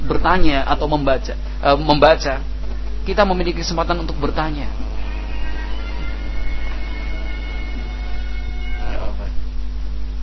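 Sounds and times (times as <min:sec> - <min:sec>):
speech: 0:00.2 - 0:02.5, 0:03.1 - 0:04.8
low hum: 0:02.4 - 0:10.2
elephant call: 0:04.3 - 0:09.3.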